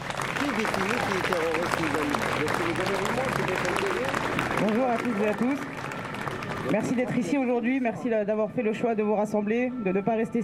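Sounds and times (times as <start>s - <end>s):
audience applause: 0.0s - 7.2s
speech: 0.6s - 5.8s, 6.7s - 10.4s.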